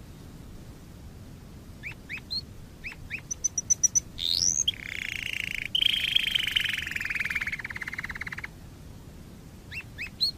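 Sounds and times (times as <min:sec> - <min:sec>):
Waterslager canary song: 0:01.8 - 0:08.5, 0:09.7 - 0:10.3.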